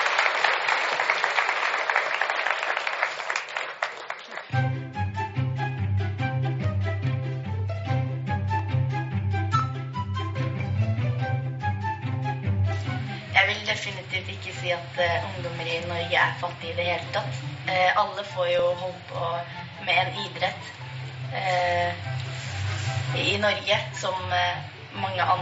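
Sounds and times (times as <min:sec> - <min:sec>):
audience applause: 0:00.0 - 0:05.0
upbeat music with a steady pulsing bass line: 0:04.6 - 0:13.7
speech: 0:13.5 - 0:22.2, 0:23.1 - 0:25.4.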